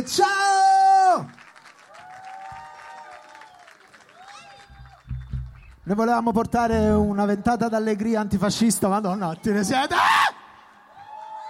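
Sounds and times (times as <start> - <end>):
speech: 0.0 - 0.4, 5.9 - 10.3
audience applause: 1.4 - 5.2.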